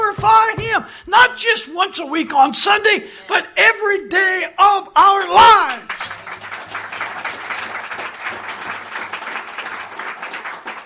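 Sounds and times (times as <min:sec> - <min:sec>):
speech: 0:00.8 - 0:06.1
audience clapping: 0:05.1 - 0:10.8.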